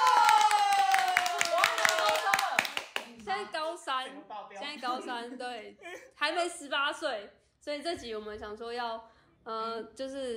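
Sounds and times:
audience clapping hands: 0:00.0 - 0:03.4
speech: 0:04.8 - 0:10.3.

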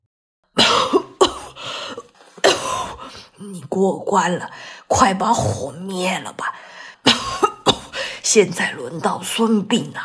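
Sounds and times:
person coughing from smoke: 0:00.6 - 0:01.7, 0:02.4 - 0:03.1, 0:07.1 - 0:08.0
speech: 0:03.4 - 0:07.2, 0:08.3 - 0:10.0.

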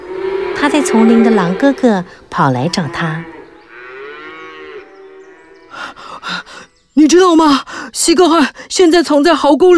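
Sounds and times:
cattle mooing: 0:00.0 - 0:05.8
speech: 0:00.6 - 0:03.3, 0:07.0 - 0:09.7.

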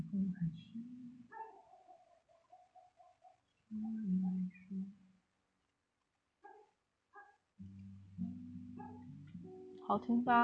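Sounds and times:
speech: 0:00.1 - 0:01.0, 0:09.9 - 0:10.3
dog barking: 0:01.3 - 0:04.5, 0:06.4 - 0:07.4, 0:08.8 - 0:09.1.

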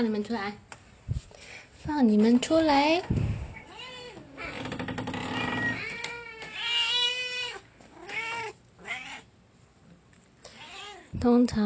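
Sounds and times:
speech: 0:00.0 - 0:01.2, 0:01.8 - 0:03.3, 0:11.2 - 0:11.6
two cats meowing: 0:03.6 - 0:09.4, 0:10.5 - 0:11.2.

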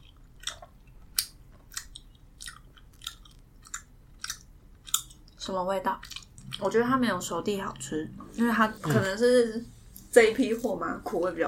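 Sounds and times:
chewing a hard dried slice of huangjing (Polygonatum): 0:00.0 - 0:06.8
speech: 0:05.5 - 0:11.4.

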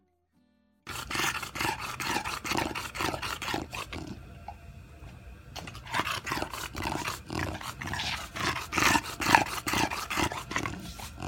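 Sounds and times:
dog breathing noise from soft-palate airway obstruction: 0:00.9 - 0:04.2, 0:05.6 - 0:11.2.

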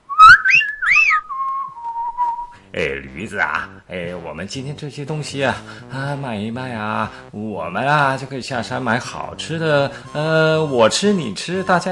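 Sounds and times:
person whistling a tune: 0:00.0 - 0:02.6
speech: 0:02.8 - 0:11.9.

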